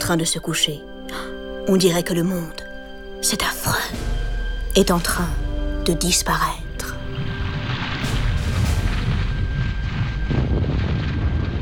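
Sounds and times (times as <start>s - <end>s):
speech: 0.1s - 4.1s, 4.8s - 6.6s
volcanic eruption explosions: 7.3s - 11.6s.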